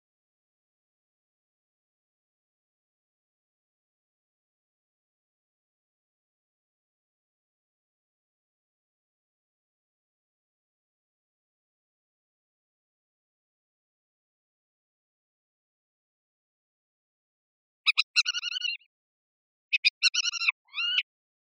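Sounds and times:
capped wheatear calling: 17.9s - 18.8s, 19.7s - 21.0s.

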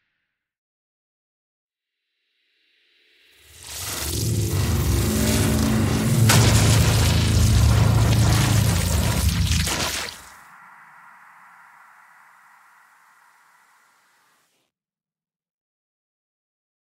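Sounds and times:
futuristic weapons: 3.8s - 10.3s.

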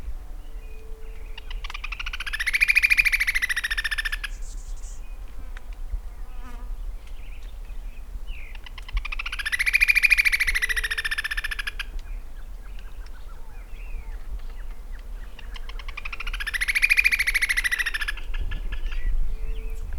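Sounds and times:
great xenops calling: 1.0s - 5.0s, 8.6s - 11.9s, 15.3s - 19.8s.

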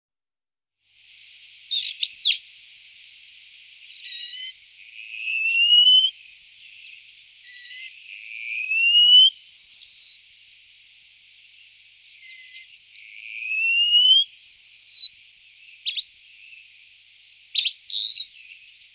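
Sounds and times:
wallcreeper high whistled notes and sharp chirps: 1.7s - 3.1s, 3.8s - 10.5s, 11.4s - 18.9s.

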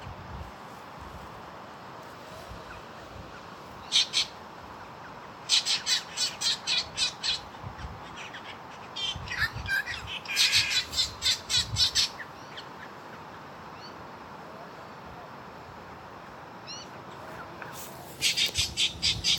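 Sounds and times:
Spangled drongo harsh squawking calls: 3.8s - 4.4s, 5.4s - 12.9s, 18.2s - 19.3s.

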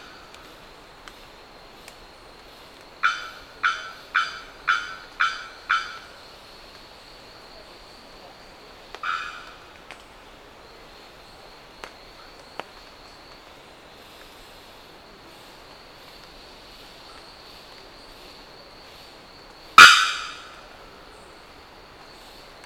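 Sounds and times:
bearded bellbird calling: 3.1s - 6.1s, 19.8s - 20.7s.

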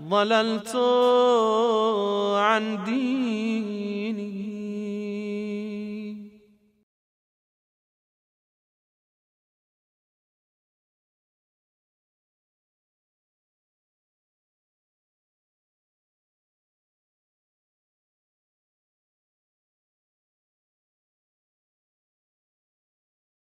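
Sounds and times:
dua prayer recitation: 0.0s - 6.6s.

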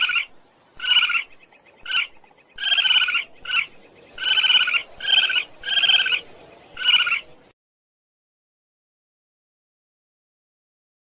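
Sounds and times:
pangolins: 0.0s - 7.5s.

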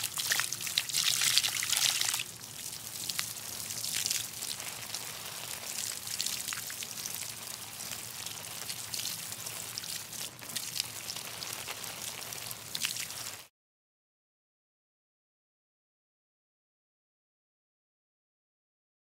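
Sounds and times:
watering plants: 0.0s - 13.5s.

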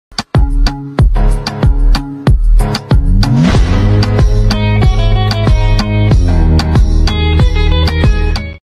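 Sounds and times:
hip hop music: 0.2s - 8.2s.

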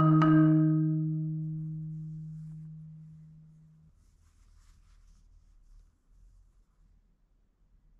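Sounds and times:
marimba: 0.0s - 3.0s.

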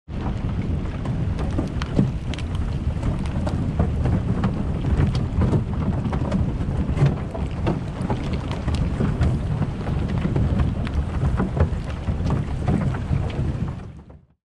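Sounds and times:
polar ice: 0.1s - 14.2s.

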